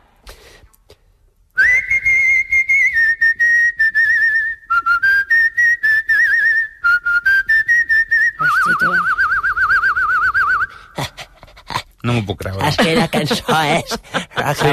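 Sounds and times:
person whistling a lively wavering melody: 0:01.6 - 0:10.9
speech: 0:12.3 - 0:14.7
laughter: 0:12.4 - 0:14.7.

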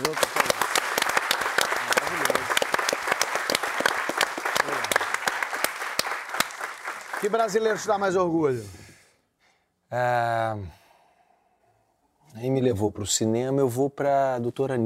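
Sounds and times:
audience applause: 0:00.0 - 0:08.2
speech: 0:07.2 - 0:08.8, 0:09.9 - 0:10.8, 0:12.4 - 0:14.8.

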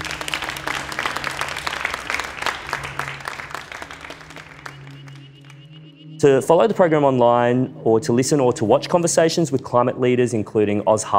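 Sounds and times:
audience applause: 0:00.0 - 0:05.7
speech: 0:06.2 - 0:11.1.

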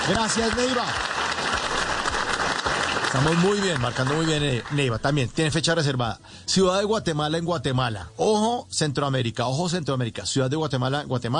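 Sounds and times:
audience applause: 0:00.0 - 0:05.4
speech: 0:00.1 - 0:01.2, 0:03.1 - 0:11.3.

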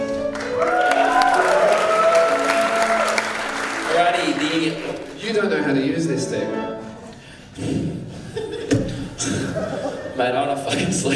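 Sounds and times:
audience clapping: 0:00.0 - 0:05.3
whoops and cheering voices: 0:00.4 - 0:03.4
speech: 0:04.6 - 0:06.8, 0:10.2 - 0:11.1
laughter: 0:07.6 - 0:11.1.

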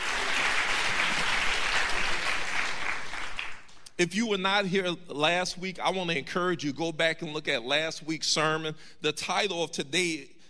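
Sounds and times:
seated audience applause: 0:00.0 - 0:03.8
speech: 0:04.0 - 0:10.3.

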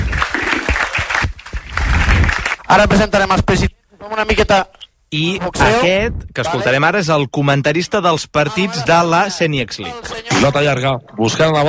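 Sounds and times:
audience applause at the launch of a local competition in Lleida: 0:00.0 - 0:02.7
speech: 0:02.7 - 0:11.6.

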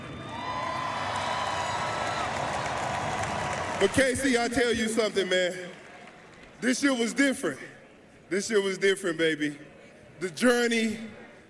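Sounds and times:
crowd applause: 0:00.0 - 0:06.9
speech: 0:03.8 - 0:05.8, 0:06.6 - 0:11.2.

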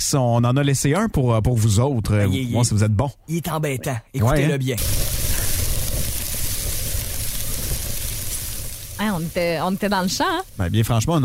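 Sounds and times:
speech: 0:00.0 - 0:05.2, 0:09.2 - 0:11.2
food sizzling on a grill: 0:04.8 - 0:11.2.

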